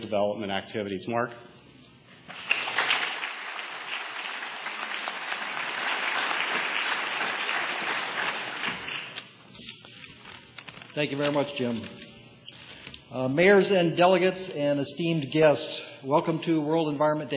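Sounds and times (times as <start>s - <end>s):
speech: 0.0s - 1.5s, 11.0s - 12.0s, 13.1s - 17.3s
audience applause: 2.3s - 9.2s.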